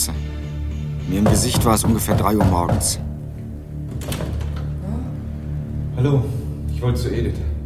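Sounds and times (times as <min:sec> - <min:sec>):
speech: 0:00.0 - 0:00.4, 0:01.1 - 0:03.1, 0:06.0 - 0:07.5
knocking on door: 0:01.1 - 0:03.1, 0:03.9 - 0:04.7
door opening: 0:03.8 - 0:04.8.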